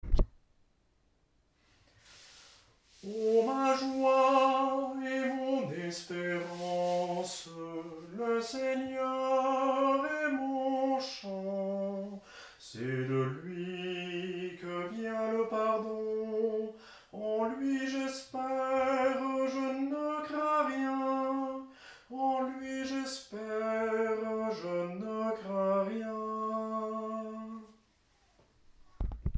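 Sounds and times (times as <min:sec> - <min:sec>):
tenor chant with several voices: 0:03.0 - 0:27.8.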